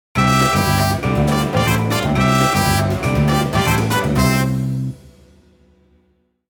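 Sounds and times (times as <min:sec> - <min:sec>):
short pachinko fanfare: 0:00.2 - 0:05.0.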